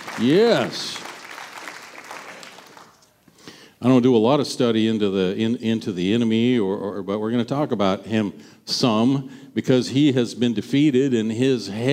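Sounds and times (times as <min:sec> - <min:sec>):
audience hand clapping: 0:00.0 - 0:03.2
speech: 0:00.2 - 0:01.0, 0:03.8 - 0:11.9.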